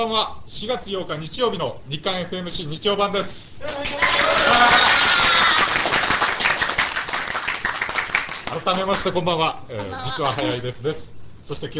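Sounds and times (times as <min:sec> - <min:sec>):
speech: 0:00.0 - 0:05.9, 0:08.5 - 0:11.7
voices cheering: 0:03.6 - 0:06.2
audience applause: 0:03.7 - 0:08.7.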